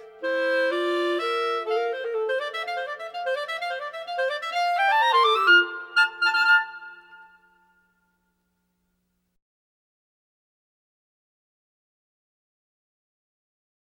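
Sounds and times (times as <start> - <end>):
clarinet duet: 0.0 - 7.6.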